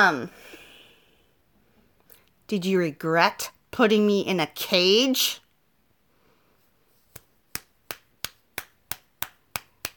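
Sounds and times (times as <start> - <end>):
speech: 0.0 - 0.6, 2.5 - 5.4
sharp crisp slaps: 7.1 - 9.9.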